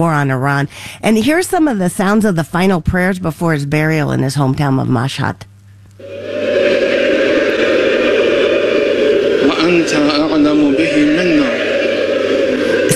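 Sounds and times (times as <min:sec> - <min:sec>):
speech: 0:00.0 - 0:06.4, 0:09.6 - 0:11.6
large crowd of women weeping at funeral: 0:06.0 - 0:09.6, 0:11.0 - 0:12.9
laughter: 0:06.0 - 0:12.9.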